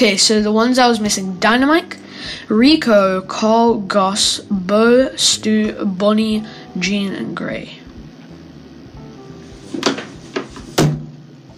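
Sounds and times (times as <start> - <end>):
speech: 0.0 - 7.8, 9.7 - 10.0
head banging on a table: 9.8 - 11.2.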